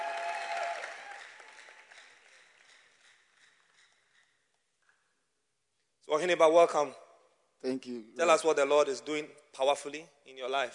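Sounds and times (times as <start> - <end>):
church congregation applause welcoming a testimony giver: 0.0 - 3.7
speech: 6.1 - 7.0, 7.6 - 10.7.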